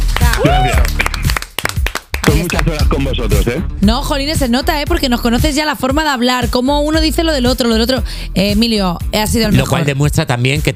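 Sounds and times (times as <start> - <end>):
applause: 0.0 - 2.9
speech: 2.6 - 10.7.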